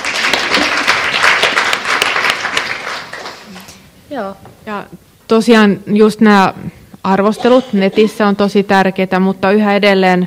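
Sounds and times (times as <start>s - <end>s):
group applauding: 0.0s - 3.8s
speech: 4.2s - 10.2s.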